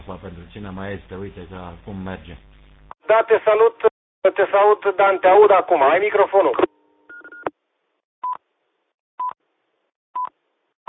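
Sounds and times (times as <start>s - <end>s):
speech: 0.1s - 6.7s
radio beeps: 4.3s - 7.5s.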